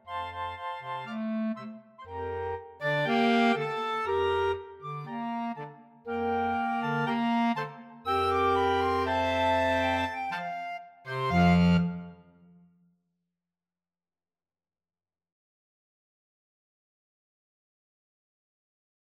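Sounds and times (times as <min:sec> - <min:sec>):
clarinet choir playing habanera: 0:00.0 - 0:12.1.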